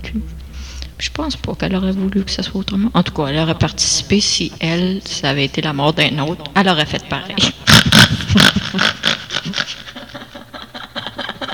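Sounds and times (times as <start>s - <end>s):
speech: 0.1s - 0.4s, 1.2s - 7.7s, 8.4s - 9.0s
laughter: 4.0s - 11.5s
pig snorting and grunting: 7.4s - 10.0s.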